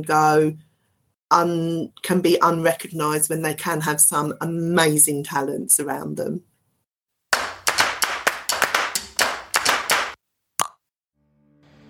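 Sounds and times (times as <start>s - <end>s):
speech: 0.0s - 0.7s, 1.3s - 6.5s
hands clapping: 7.3s - 10.2s.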